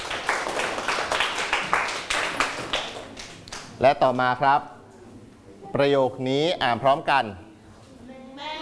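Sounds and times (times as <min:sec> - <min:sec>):
students clapping for themselves: 0:00.0 - 0:03.8
speech: 0:03.8 - 0:04.8, 0:05.7 - 0:07.4.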